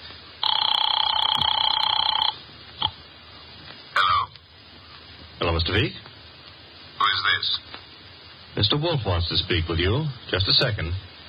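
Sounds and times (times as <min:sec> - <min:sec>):
telephone bell ringing: 0:00.4 - 0:02.9
speech: 0:05.5 - 0:06.1, 0:07.2 - 0:07.8, 0:08.6 - 0:11.1.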